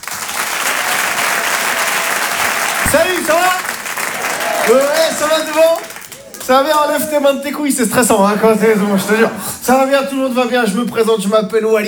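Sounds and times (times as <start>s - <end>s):
comedy club audience clapping and cheering to welcome a comedian: 0.0s - 7.6s
laughter: 0.3s - 10.9s
speech: 4.7s - 5.9s, 6.5s - 11.8s.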